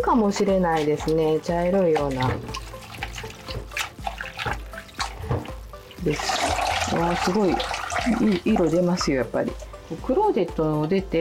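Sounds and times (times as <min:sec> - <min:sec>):
speech: 0:00.0 - 0:02.7, 0:06.0 - 0:11.1
red shiso leaves rinsed in water: 0:00.0 - 0:11.1.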